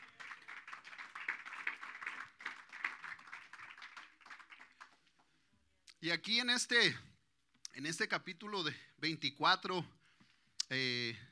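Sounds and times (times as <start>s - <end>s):
audience applause: 0.0s - 5.2s
speech: 6.0s - 7.1s, 7.8s - 10.0s, 10.7s - 11.2s.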